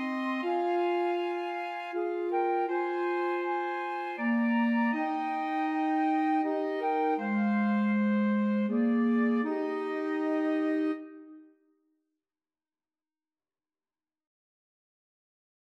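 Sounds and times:
flexible mixed ensemble of three players playing a Christmas carol: 0.0 - 11.4.

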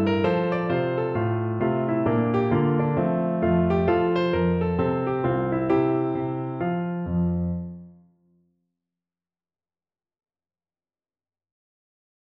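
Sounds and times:
piano folk tune: 0.0 - 7.9.

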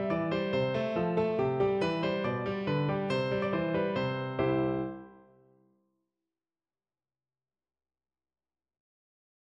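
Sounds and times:
folk tune played on piano: 0.0 - 5.4.

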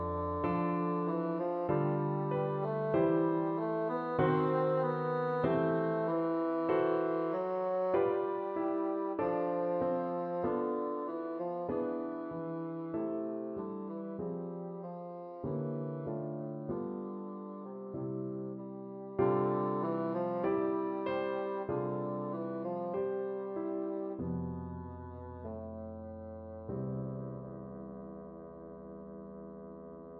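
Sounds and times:
bassoon playing: 0.0 - 30.1.

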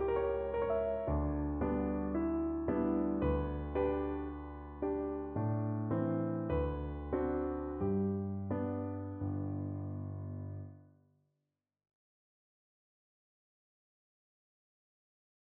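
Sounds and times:
piano piece: 0.0 - 10.9.

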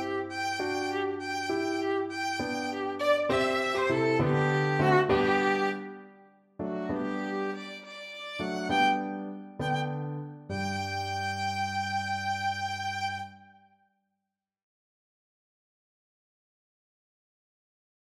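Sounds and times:
violin: 0.0 - 13.7.

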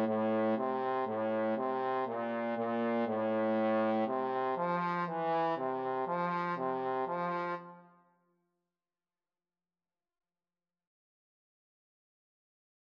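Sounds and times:
trombone duet: 0.0 - 7.8.

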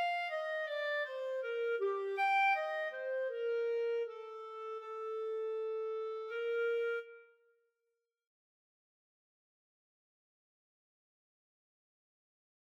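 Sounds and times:
clarinet duet: 0.0 - 7.4.

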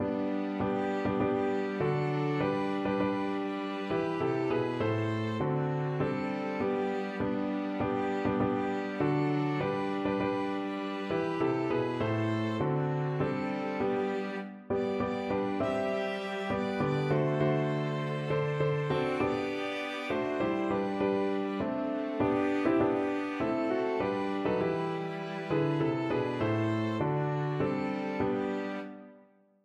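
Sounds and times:
Christmas piano quartet: 0.0 - 29.2.

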